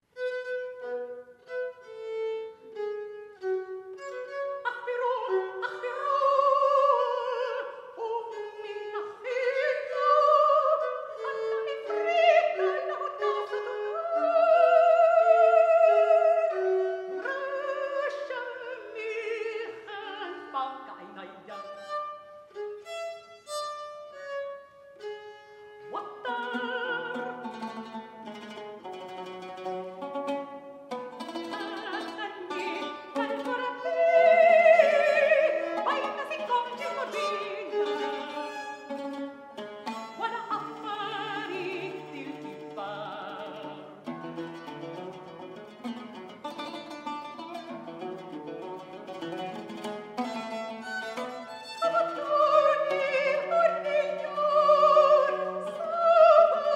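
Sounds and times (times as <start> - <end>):
oud: 0.0 - 56.7
mezzo-soprano singing: 3.3 - 22.6, 25.8 - 28.2, 31.2 - 39.1, 39.8 - 44.1, 51.0 - 56.7.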